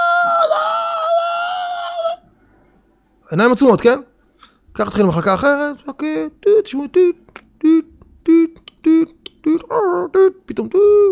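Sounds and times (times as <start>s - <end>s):
woman screaming during a difficult labour in a hospital ward: 0.0s - 2.2s
speech: 3.3s - 4.1s, 4.8s - 11.0s.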